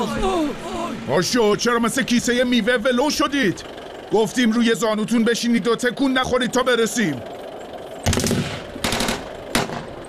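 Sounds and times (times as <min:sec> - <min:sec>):
speech: 0:00.0 - 0:07.4
machine gun fire: 0:08.0 - 0:10.0.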